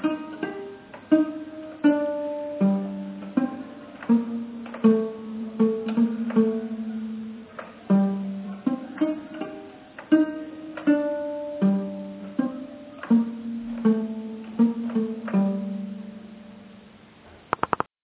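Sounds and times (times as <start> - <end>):
nyckelharpa played pizzicato: 0.0 - 17.0.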